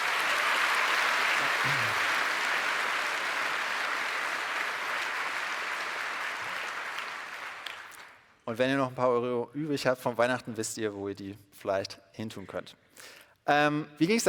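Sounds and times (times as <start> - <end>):
audience applause: 0.0 - 8.2
speech: 8.5 - 14.2.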